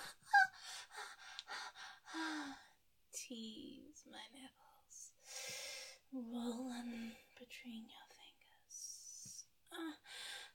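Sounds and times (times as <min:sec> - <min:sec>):
woman gasping: 0:00.0 - 0:02.6
woman breathy panting: 0:00.0 - 0:02.7
speech: 0:03.3 - 0:08.1.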